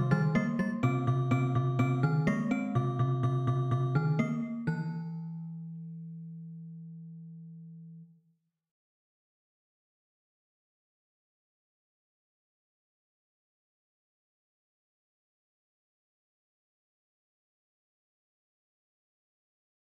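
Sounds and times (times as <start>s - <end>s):
celesta: 0.0s - 5.8s.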